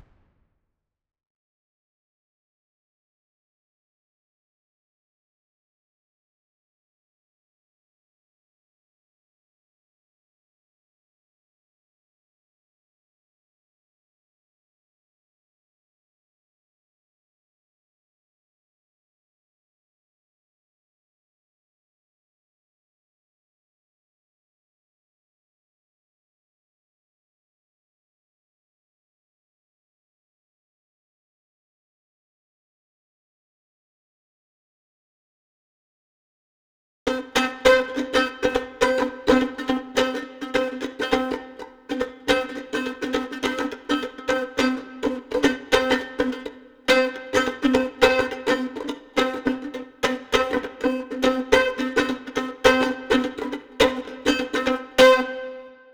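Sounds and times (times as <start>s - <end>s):
mandolin: 37.1s - 55.9s.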